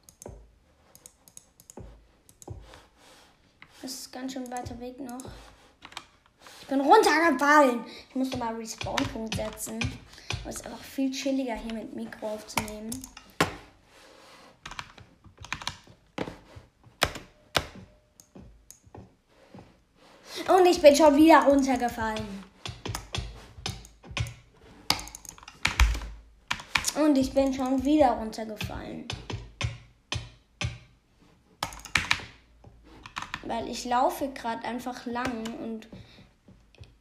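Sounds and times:
computer keyboard keys clicking: 0.0 - 2.6, 4.4 - 6.1, 8.3 - 10.6, 12.5 - 13.4, 14.6 - 15.9, 17.0 - 19.0, 21.0 - 30.8, 31.6 - 32.4
speech: 3.8 - 5.6, 6.7 - 13.2, 20.7 - 22.5, 27.1 - 29.2, 33.5 - 36.0.

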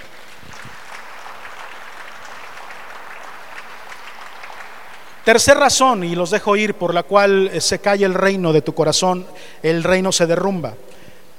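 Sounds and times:
audience applause: 0.0 - 5.3
speech: 5.3 - 10.9.

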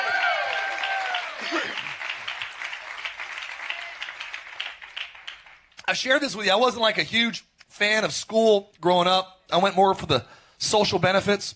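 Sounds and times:
audience applause: 0.0 - 5.7
speech: 5.9 - 11.5.

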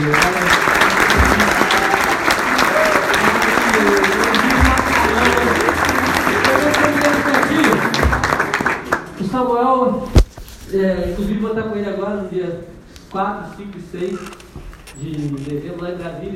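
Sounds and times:
audience applause: 0.0 - 9.2
speech: 10.8 - 14.4, 15.0 - 16.3.

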